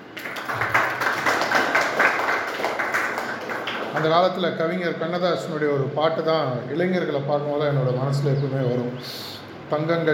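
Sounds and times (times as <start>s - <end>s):
audience applause: 0.0s - 4.4s
speech: 4.0s - 10.1s.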